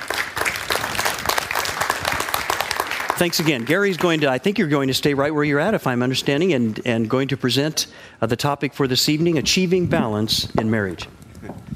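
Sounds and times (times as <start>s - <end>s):
audience applause welcoming panel members at a marriage ministry event: 0.0s - 5.1s
speech: 3.2s - 11.7s.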